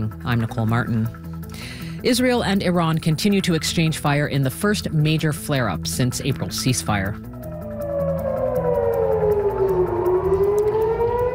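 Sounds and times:
speech: 0:00.0 - 0:07.3
air raid sirens blaring in Jerusalem: 0:07.2 - 0:11.3.

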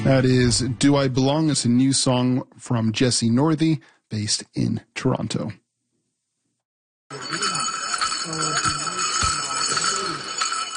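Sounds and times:
speech: 0:00.0 - 0:05.6
faint voices murmuring: 0:07.1 - 0:10.7
small metal bells jingling on a jingle dress: 0:07.1 - 0:10.7.

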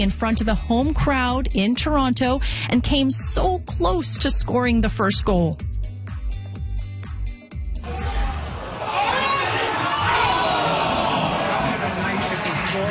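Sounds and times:
speech: 0:00.0 - 0:05.7
fans watching a football game at Sir John A. Pub on Elgin Street: 0:07.8 - 0:12.9.

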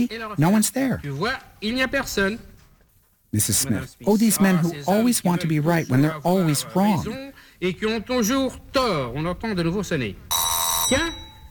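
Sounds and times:
speech: 0:00.0 - 0:02.5, 0:03.3 - 0:11.2
electric doorbell ringing: 0:10.3 - 0:11.4.

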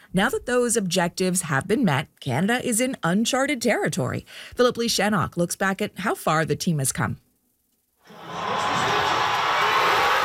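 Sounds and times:
speech: 0:00.1 - 0:07.2
crowd cheering at a watch party: 0:08.0 - 0:10.2.

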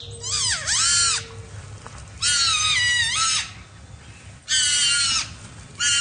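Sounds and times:
two adult-sized porcupines wailing at night by a roadside in Seaforth, Nova Scotia: 0:00.0 - 0:01.6, 0:02.2 - 0:03.8, 0:04.4 - 0:05.9.

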